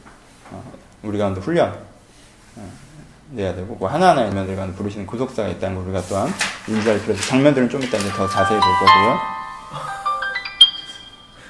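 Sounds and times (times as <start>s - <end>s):
speech: 1.0s - 1.9s, 2.6s - 9.9s
alarm ringing: 8.0s - 11.4s.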